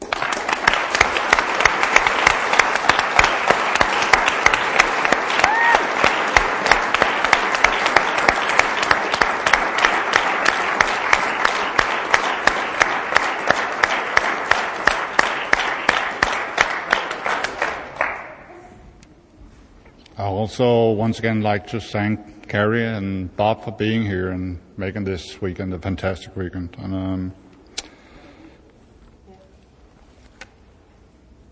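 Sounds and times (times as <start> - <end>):
audience applause: 0.0 - 18.5
speech: 20.5 - 27.4.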